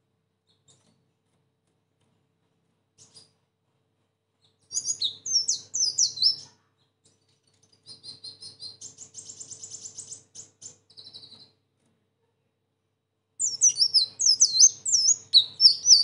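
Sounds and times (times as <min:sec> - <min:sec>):
sunbird singing a high-pitched twittering song: 0:04.4 - 0:06.5, 0:07.7 - 0:11.5, 0:13.4 - 0:16.0.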